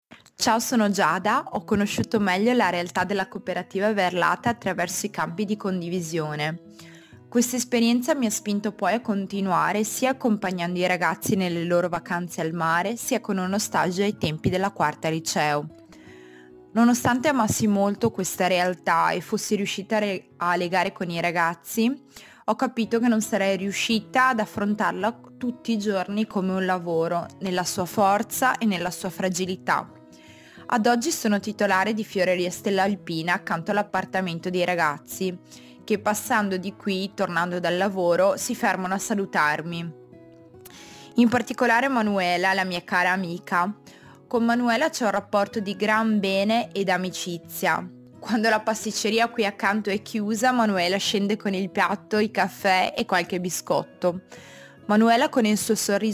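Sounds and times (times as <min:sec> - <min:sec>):
music: 0:00.0 - 0:56.1.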